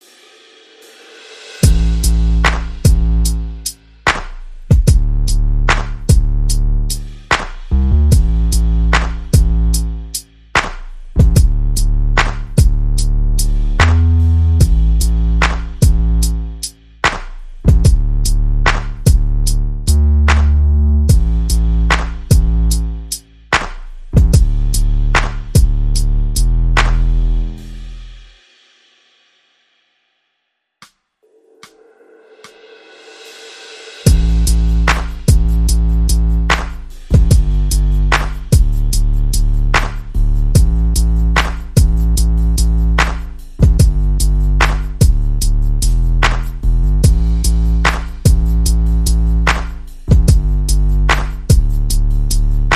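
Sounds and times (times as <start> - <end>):
percussion: 0.0 - 29.7, 30.8 - 52.7
bass: 1.6 - 28.4, 34.0 - 52.7.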